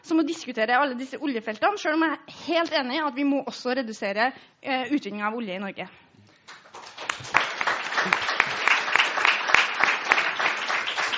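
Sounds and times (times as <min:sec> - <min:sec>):
speech: 0:00.0 - 0:06.0
audience applause: 0:06.5 - 0:11.1.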